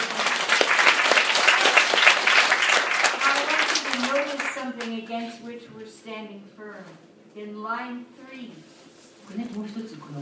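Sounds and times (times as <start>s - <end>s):
audience clapping: 0.0s - 5.0s
speech: 6.0s - 10.1s.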